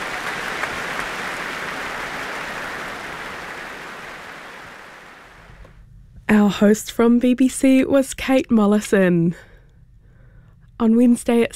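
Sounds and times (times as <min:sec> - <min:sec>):
concert audience applause: 0:00.0 - 0:05.4
speech: 0:06.5 - 0:09.5, 0:10.8 - 0:11.5.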